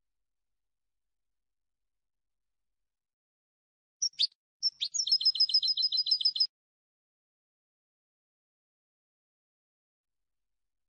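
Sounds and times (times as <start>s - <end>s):
European goldfinch singing: 4.0s - 6.5s.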